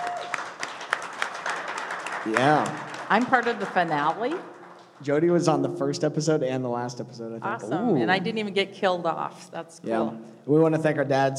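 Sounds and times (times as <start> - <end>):
round of applause: 0.0 - 5.3
speech: 2.2 - 11.3.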